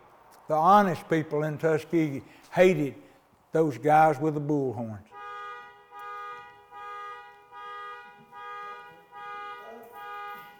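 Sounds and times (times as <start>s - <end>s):
speech: 0.5s - 5.1s
car alarm honking: 5.0s - 10.5s.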